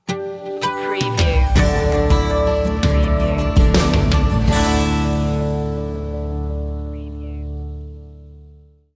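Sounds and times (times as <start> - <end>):
music sting: 1.1 - 7.9.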